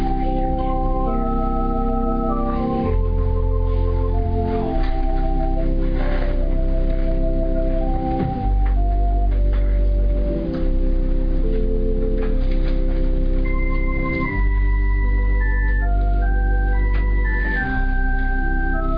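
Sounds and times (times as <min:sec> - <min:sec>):
organ playing a prelude for opening worship: 0:00.0 - 0:18.9.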